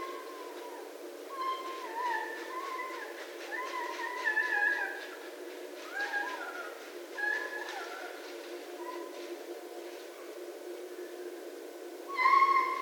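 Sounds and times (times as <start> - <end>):
red fox calling: 0.0 - 9.3, 12.1 - 12.8.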